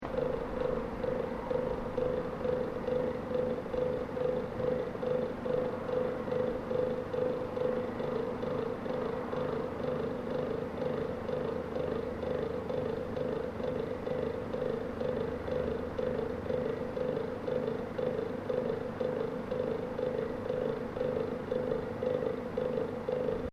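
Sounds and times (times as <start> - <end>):
industrial heater exhaust port blowing: 0.0 - 23.5.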